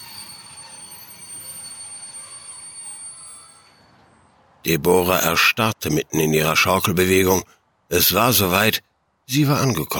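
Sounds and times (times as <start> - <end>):
train wheels screeching steel on steel: 0.0 - 4.6
speech: 4.6 - 9.9.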